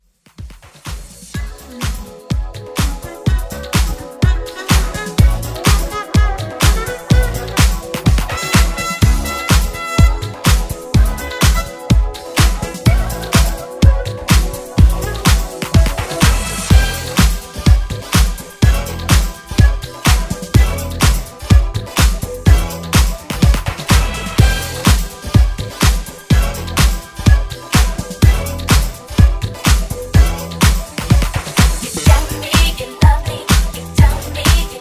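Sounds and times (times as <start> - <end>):
eighties drum beat: 0.2 - 34.7.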